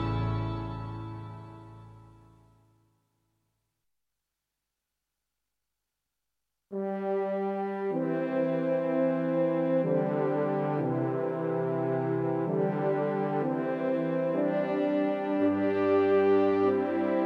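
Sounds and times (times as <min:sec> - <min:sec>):
music: 0:00.0 - 0:03.2, 0:06.8 - 0:17.2.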